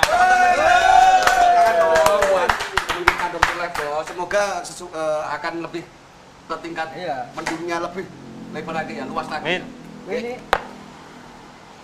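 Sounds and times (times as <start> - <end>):
scattered applause from a small audience: 0.0 - 4.2
speech: 4.4 - 10.6.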